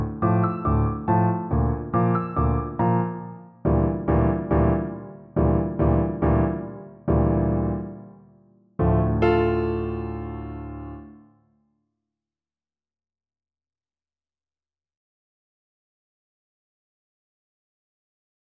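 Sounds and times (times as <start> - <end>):
piano piece played poco animato: 0.0 - 11.3.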